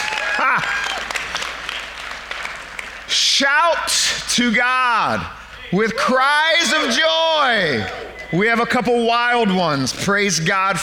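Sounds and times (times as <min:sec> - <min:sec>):
hands clapping: 0:00.0 - 0:03.1
speech: 0:00.6 - 0:00.8, 0:03.2 - 0:10.8.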